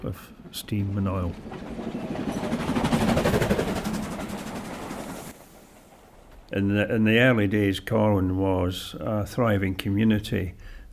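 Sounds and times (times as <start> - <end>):
speech: 0.0 - 1.8, 6.5 - 10.9
train wheels clacking over railway joints: 0.0 - 7.6
passing train rumbling: 0.0 - 10.4.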